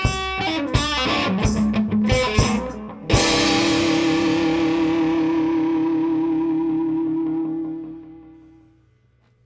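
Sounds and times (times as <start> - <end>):
drums: 0.0 - 6.3
lead guitar: 0.0 - 8.5.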